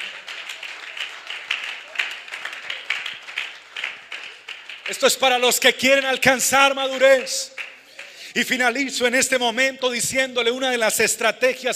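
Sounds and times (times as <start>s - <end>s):
audience applause: 0.0s - 5.4s
speech: 4.9s - 7.5s, 8.4s - 11.7s.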